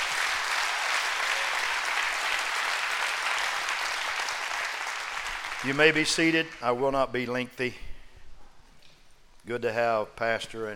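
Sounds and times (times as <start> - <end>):
audience clapping hands: 0.0 - 6.8
speech: 5.6 - 7.9, 9.5 - 10.7.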